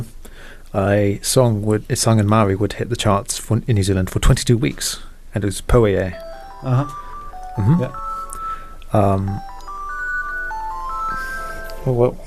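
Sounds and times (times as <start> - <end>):
speech: 0.7 - 7.0, 7.6 - 8.0, 8.9 - 9.5, 11.8 - 12.2
mobile phone ringtone with stepped electronic melody: 6.1 - 12.2.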